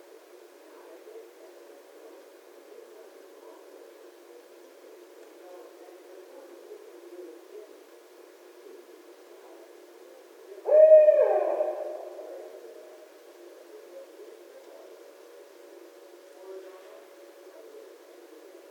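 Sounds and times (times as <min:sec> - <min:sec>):
barred owl hooting: 0:10.6 - 0:13.0.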